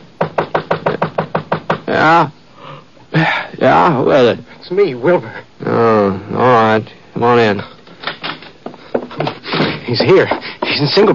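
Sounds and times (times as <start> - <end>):
fist pounding on a door: 0.2 - 1.9
speech: 1.9 - 2.4, 3.1 - 7.8, 9.9 - 11.1.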